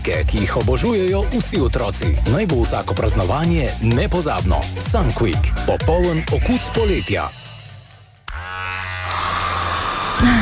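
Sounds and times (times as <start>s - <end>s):
speech: 0.0s - 7.4s
electric shaver buzzing: 8.3s - 10.4s.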